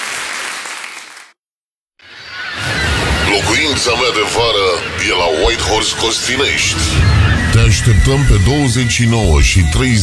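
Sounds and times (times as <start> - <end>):
crowd applause: 0.0 - 1.4
speech: 3.6 - 10.0.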